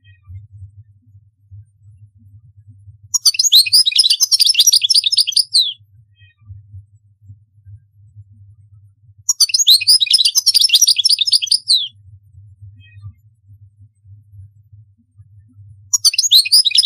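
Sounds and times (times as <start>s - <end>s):
European goldfinch twittering: 3.2s - 5.8s, 9.3s - 11.9s, 16.0s - 16.8s.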